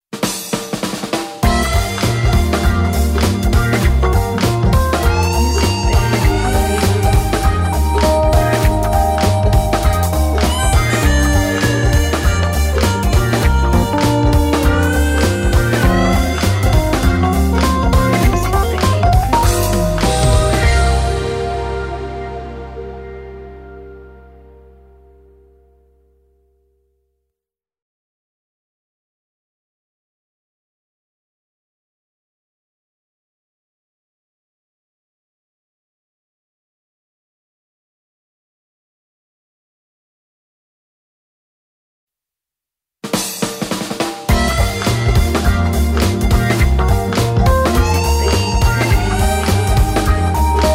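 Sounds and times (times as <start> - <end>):
logo music: 1.2 - 25.8, 43.8 - 50.7.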